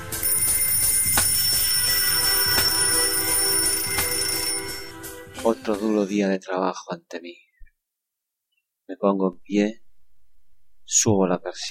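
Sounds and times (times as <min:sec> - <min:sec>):
alarm clock ringing: 0:00.2 - 0:05.0
speech: 0:05.5 - 0:07.5, 0:08.9 - 0:09.8, 0:10.9 - 0:11.6.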